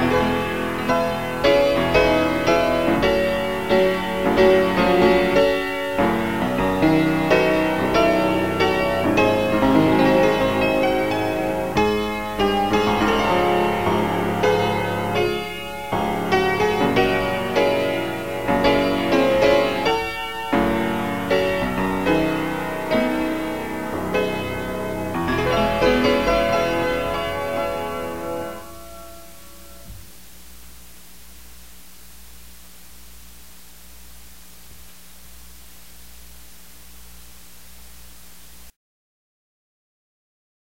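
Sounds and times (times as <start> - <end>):
piano: 0.0 - 30.6.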